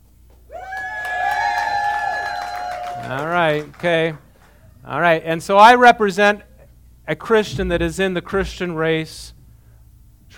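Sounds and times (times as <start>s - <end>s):
crowd cheering and whooping: 0.5s - 3.8s
speech: 3.5s - 4.2s, 4.8s - 6.5s, 7.1s - 9.4s.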